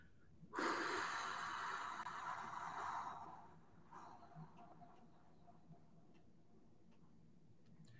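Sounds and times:
soft breath: 0.0 - 5.3
person exhaling in a long extended exhalation during a guided breathing exercise: 0.5 - 4.3.

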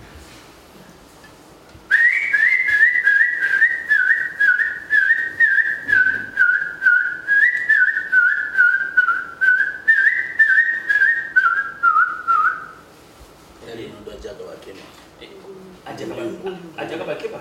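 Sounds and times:
person whistling imitation of a monkey-eating bird's call: 1.9 - 12.8.

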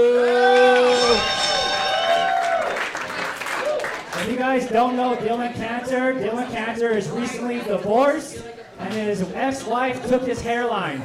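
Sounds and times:
audience applause: 0.0 - 4.3
speech: 4.6 - 11.0.

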